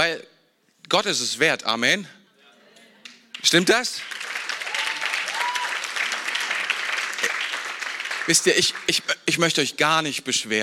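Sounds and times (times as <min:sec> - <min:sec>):
speech: 0:00.0 - 0:02.2, 0:03.4 - 0:04.3, 0:08.3 - 0:10.6
audience clapping: 0:03.0 - 0:09.2.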